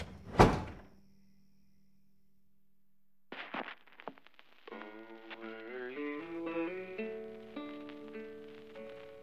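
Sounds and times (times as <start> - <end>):
front door closing: 0.0 - 0.9
music playing: 4.7 - 9.2.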